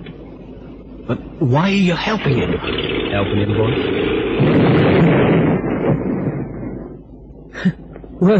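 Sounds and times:
speech: 1.1s - 5.3s, 7.6s - 8.3s
boat exploding: 2.3s - 7.0s.

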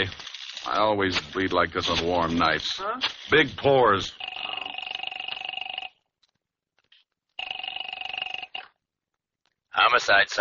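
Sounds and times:
speech: 0.0s - 4.3s, 9.9s - 10.3s
telephone bell ringing: 4.2s - 6.0s, 7.4s - 8.8s.

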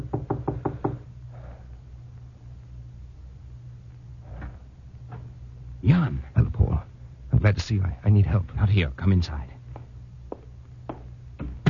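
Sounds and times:
knocking on a wooden door: 0.0s - 1.0s
low steady hum: 0.0s - 11.6s
speech: 5.8s - 6.6s, 7.5s - 9.5s.

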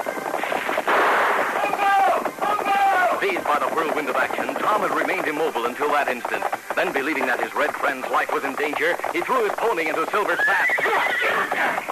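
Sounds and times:
Colt revolvers and single-shot rifle gunfire: 0.4s - 3.2s
speech: 3.5s - 11.9s.

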